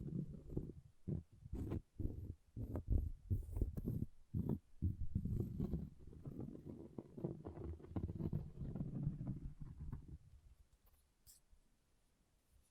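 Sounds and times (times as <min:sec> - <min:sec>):
object scratching: 0:00.0 - 0:10.2.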